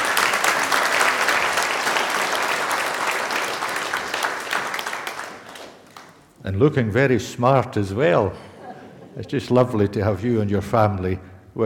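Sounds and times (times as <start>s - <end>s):
audience applause: 0.0s - 6.3s
speech: 6.5s - 8.5s, 9.2s - 11.6s
laughter: 8.2s - 9.7s.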